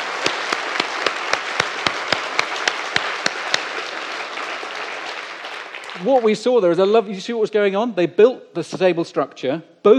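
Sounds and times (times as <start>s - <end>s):
audience applause: 0.0s - 6.5s
sharp evenly spaced claps: 0.0s - 6.5s
speech: 6.0s - 9.9s.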